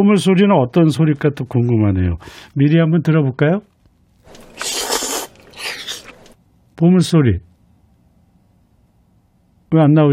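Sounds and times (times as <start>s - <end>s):
speech: 0.0s - 3.7s, 6.8s - 7.5s, 9.7s - 10.1s
noodle slurping: 4.2s - 6.4s.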